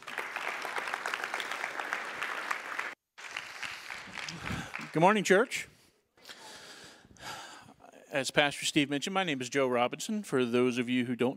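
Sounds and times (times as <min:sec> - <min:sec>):
church congregation applauding a speaker at a Sunday service: 0:00.0 - 0:05.6
speech: 0:05.0 - 0:05.7, 0:08.1 - 0:11.3.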